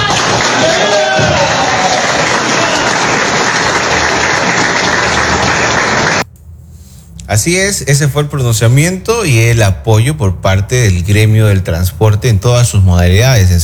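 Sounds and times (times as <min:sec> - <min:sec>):
audience applause: 0:00.0 - 0:06.2
speech: 0:07.3 - 0:13.6.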